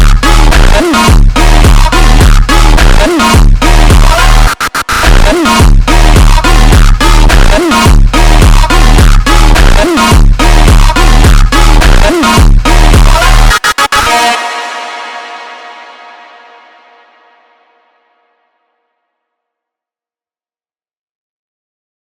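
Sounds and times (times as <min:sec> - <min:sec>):
slowed funk music: 0:00.0 - 0:14.9.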